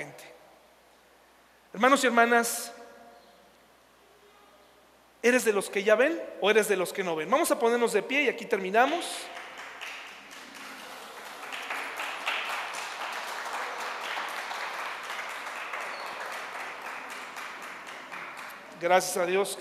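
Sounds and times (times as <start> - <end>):
speech: 1.8 - 2.8, 5.2 - 9.4, 18.8 - 19.5
crowd clapping in a large room: 8.8 - 19.3.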